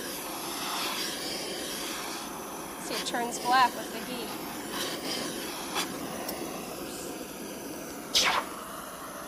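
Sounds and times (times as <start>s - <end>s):
hot copper hissing as it's quenched in water: 0.0s - 9.2s
speech: 2.9s - 5.4s.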